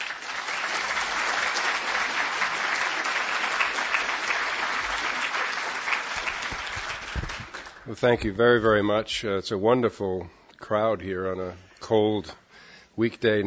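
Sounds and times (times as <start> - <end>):
audience applause welcoming a speaker: 0.0 - 7.9
speech: 7.9 - 12.4, 13.0 - 13.4.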